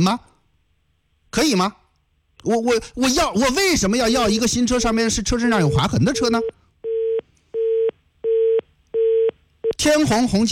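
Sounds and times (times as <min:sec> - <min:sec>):
speech: 0:00.0 - 0:00.3, 0:01.3 - 0:01.8, 0:02.4 - 0:06.6, 0:09.8 - 0:10.4
telephone busy tone after a hung-up call: 0:06.4 - 0:09.3.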